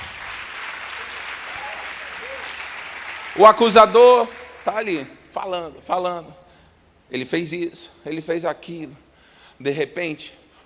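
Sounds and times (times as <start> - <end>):
audience applauding: 0.0 - 5.0
speech: 3.4 - 6.4, 7.1 - 9.0, 9.6 - 10.4.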